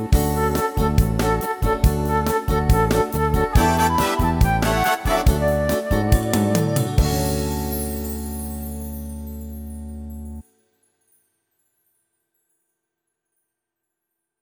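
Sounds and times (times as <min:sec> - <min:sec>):
Christmas bossa nova music: 0:00.0 - 0:10.4.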